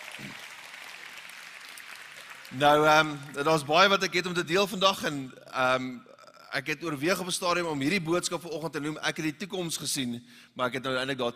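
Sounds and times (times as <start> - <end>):
audience applause: 0.0 - 3.7
speech: 2.5 - 11.3.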